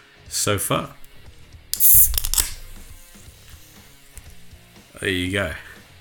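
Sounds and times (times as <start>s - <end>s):
speech: 0.3s - 1.0s, 1.8s - 2.0s, 5.0s - 5.7s
drink can being opened: 1.0s - 3.2s.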